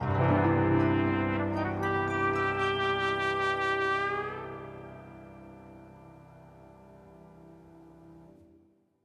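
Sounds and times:
music sting: 0.0 - 7.2.

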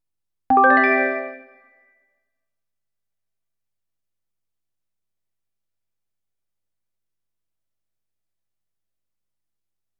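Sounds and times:
equipment level up chime: 0.5 - 1.6.

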